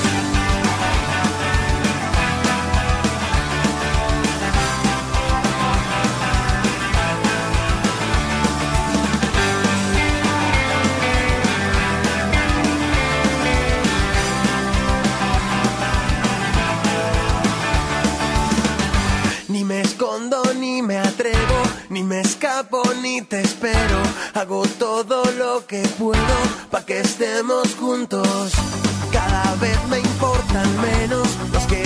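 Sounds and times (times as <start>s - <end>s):
TV series theme song with full band arrangement: 0.0s - 31.8s
speech: 24.4s - 31.8s.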